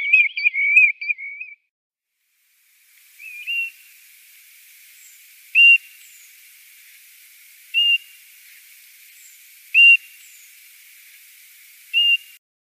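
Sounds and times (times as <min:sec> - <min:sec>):
plover song of clear whistled notes and warbled chattering: 0:00.0 - 0:01.7, 0:03.2 - 0:03.9, 0:05.0 - 0:06.4, 0:07.7 - 0:08.2, 0:09.1 - 0:11.2, 0:11.9 - 0:12.4.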